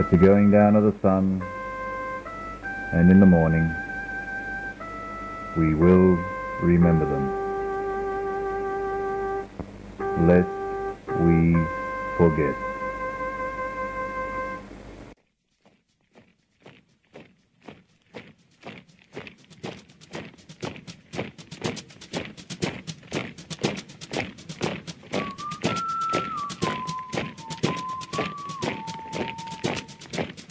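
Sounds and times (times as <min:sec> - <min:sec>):
speech: 0:00.0 - 0:01.6, 0:02.9 - 0:03.8, 0:05.6 - 0:07.4, 0:10.2 - 0:12.6
soldiers' marching footsteps on Anzac Day: 0:00.0 - 0:08.7, 0:09.5 - 0:30.4
faint wavering tone: 0:00.0 - 0:14.7, 0:25.2 - 0:30.2
steady tone: 0:00.0 - 0:15.2, 0:23.5 - 0:30.4.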